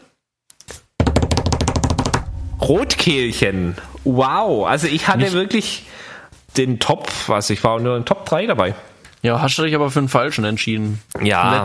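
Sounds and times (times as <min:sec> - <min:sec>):
drum taps: 0:01.0 - 0:02.6
drum roll: 0:01.0 - 0:05.8
speech: 0:02.6 - 0:11.6.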